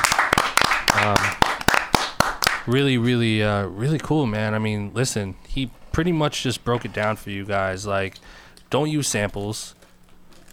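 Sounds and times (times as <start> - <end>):
round of applause: 0.0 - 2.7
steady murmur: 0.0 - 10.4
person cheering: 0.8 - 1.4
speech: 2.6 - 9.8.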